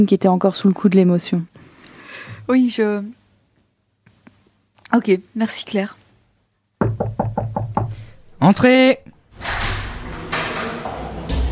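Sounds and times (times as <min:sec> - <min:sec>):
speech: 0:00.0 - 0:01.6, 0:02.2 - 0:03.2, 0:04.9 - 0:06.0, 0:08.4 - 0:09.6
door to the radio station's room pushed open: 0:06.8 - 0:11.3.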